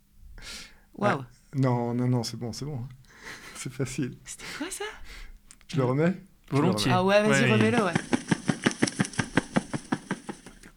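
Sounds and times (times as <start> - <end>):
speech: 1.0 - 8.1
pigeon wings flapping: 7.5 - 10.7.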